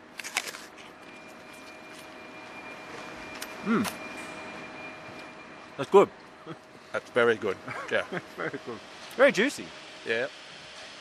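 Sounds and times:
crunchy bite into a juicy apple: 0:00.1 - 0:01.0
speech: 0:03.6 - 0:04.0, 0:05.8 - 0:10.4
laughter: 0:06.4 - 0:06.6, 0:07.5 - 0:08.8.

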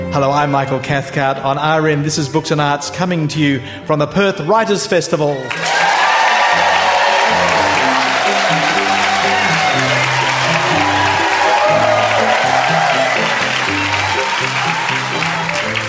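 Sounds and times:
speech: 0:00.2 - 0:06.0
audience applause: 0:05.5 - 0:15.8.

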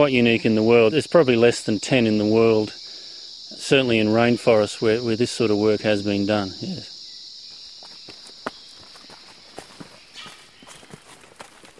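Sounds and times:
speech: 0:00.0 - 0:02.8, 0:03.7 - 0:06.9
high-pitched insect-like buzz: 0:00.0 - 0:10.9
footsteps walking along a narrow track through an Australian rainforest plot on a ridge: 0:07.5 - 0:11.7.

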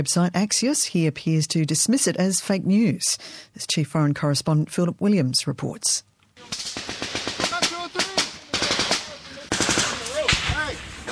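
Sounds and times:
speech: 0:00.0 - 0:07.0
machine gun fire on a battlefield: 0:06.4 - 0:11.1
shouting voices on a battlefield: 0:06.4 - 0:11.1.

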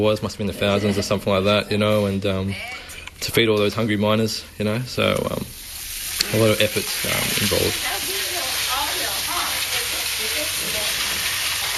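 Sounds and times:
speech: 0:00.0 - 0:05.6, 0:06.2 - 0:08.1
beef and noodles frying in a pan: 0:05.0 - 0:11.7.

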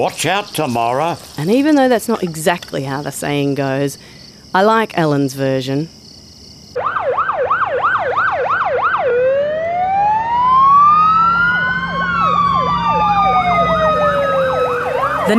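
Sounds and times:
speech: 0:00.0 - 0:06.0
fire truck siren: 0:06.8 - 0:15.3.

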